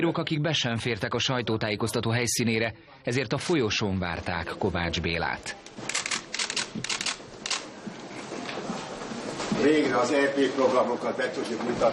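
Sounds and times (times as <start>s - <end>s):
speech: 0.0s - 6.1s, 6.8s - 7.2s, 9.6s - 11.9s
murmuring noise: 3.8s - 11.9s
camera shutters clicking and whirring in a press room: 5.7s - 7.7s.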